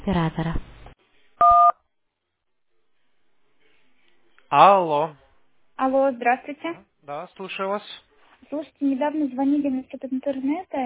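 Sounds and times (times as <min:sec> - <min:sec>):
speech: 0:00.1 - 0:00.7, 0:04.5 - 0:05.2, 0:05.8 - 0:10.8
telephone keypad tone for the number one: 0:01.4 - 0:01.8.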